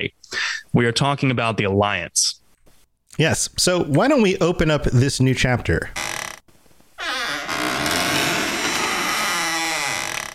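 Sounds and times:
speech: 0:00.0 - 0:02.4, 0:03.2 - 0:06.1
squeaky door opening sound effect: 0:06.0 - 0:06.4, 0:07.0 - 0:10.3.

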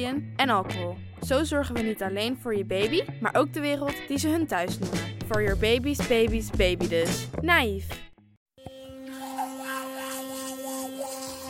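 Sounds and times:
speech: 0:00.0 - 0:08.0
electric toothbrush brushing teeth: 0:08.6 - 0:11.4.

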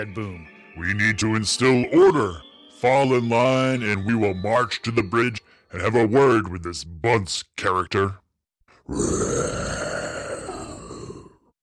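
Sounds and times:
speech: 0:00.0 - 0:08.2, 0:08.9 - 0:09.6
low growl: 0:08.8 - 0:11.5
guttural monster roar: 0:08.9 - 0:11.5.

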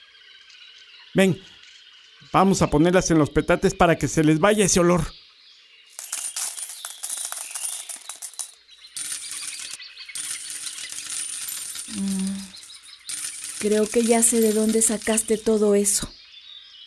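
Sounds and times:
speech: 0:01.2 - 0:01.5, 0:02.3 - 0:05.2, 0:13.6 - 0:16.2
silver coins clinking and jingling: 0:04.5 - 0:04.8, 0:06.0 - 0:16.1.

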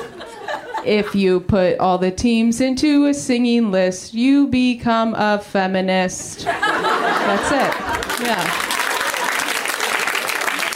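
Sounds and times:
laughter: 0:00.0 - 0:01.2, 0:06.4 - 0:10.7
speech: 0:00.8 - 0:08.7
audience clapping after a joke: 0:07.5 - 0:10.7.

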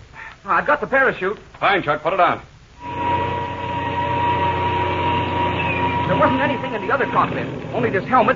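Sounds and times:
speech: 0:00.4 - 0:02.9, 0:06.2 - 0:08.3
airplane engine droning: 0:02.8 - 0:08.3.

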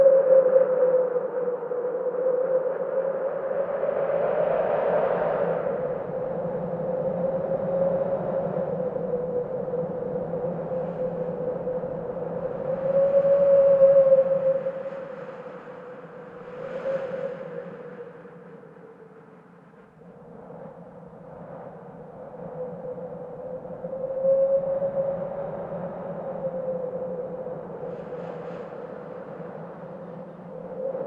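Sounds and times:
howling wind: 0:00.0 - 0:31.0.

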